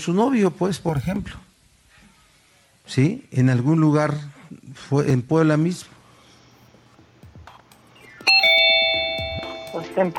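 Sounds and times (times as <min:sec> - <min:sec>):
speech: 0:00.0 - 0:01.5, 0:02.9 - 0:06.0, 0:09.8 - 0:10.1
buzzer ringing: 0:08.3 - 0:09.8.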